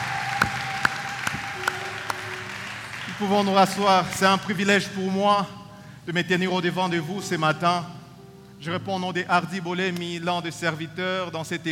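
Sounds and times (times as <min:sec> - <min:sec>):
sharp claps: 0:00.0 - 0:04.5
church congregation applauding: 0:00.0 - 0:05.0
speech: 0:03.2 - 0:08.0, 0:08.6 - 0:11.7.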